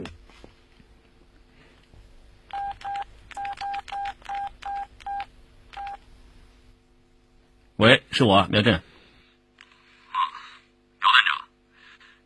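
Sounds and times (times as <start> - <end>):
quiet room hum: 0.0 - 12.2
telephone keypad dialing tones: 2.5 - 6.0
speech: 7.8 - 8.9.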